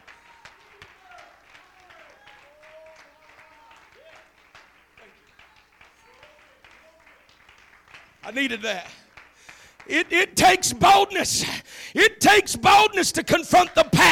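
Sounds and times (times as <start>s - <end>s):
audience clapping hands: 0.0s - 11.0s
speech: 8.2s - 9.0s, 9.9s - 14.0s.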